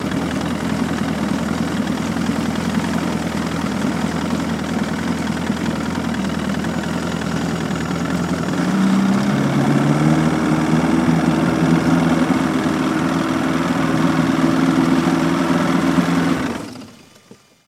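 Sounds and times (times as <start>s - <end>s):
115 hp Evinrude outboard boat motor pulling up and shutting off: 0.0s - 17.6s.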